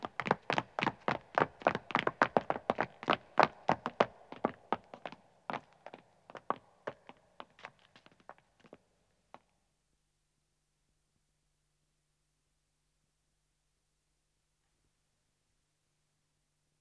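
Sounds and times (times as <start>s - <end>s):
three men starting to run, footsteps on stone: 0.0s - 8.8s.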